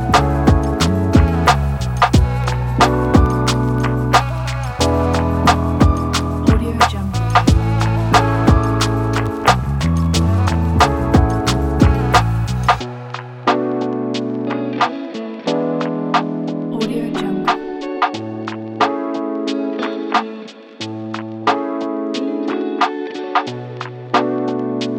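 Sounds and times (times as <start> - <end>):
chill lofi hip hop lounge beat: 0.0 - 24.9.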